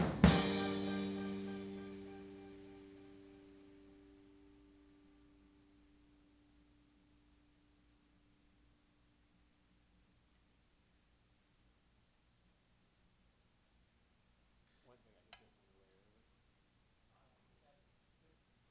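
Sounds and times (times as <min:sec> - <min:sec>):
snare drum: 0:00.0 - 0:02.4.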